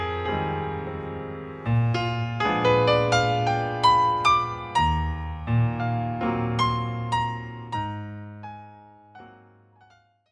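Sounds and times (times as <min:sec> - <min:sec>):
solo piano: 0:00.0 - 0:10.3.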